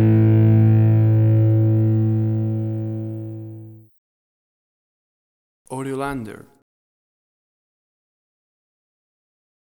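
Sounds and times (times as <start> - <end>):
rock music: 0.0 - 3.7.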